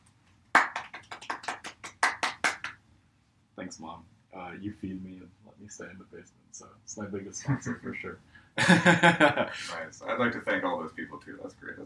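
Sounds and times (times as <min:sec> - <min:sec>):
small round of applause: 0:00.5 - 0:02.8
speech: 0:03.6 - 0:11.8.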